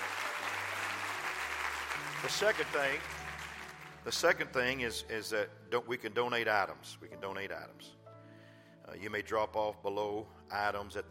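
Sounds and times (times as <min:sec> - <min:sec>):
hands clapping: 0:00.0 - 0:04.4
speech: 0:02.2 - 0:03.2, 0:04.0 - 0:08.0, 0:08.9 - 0:11.0.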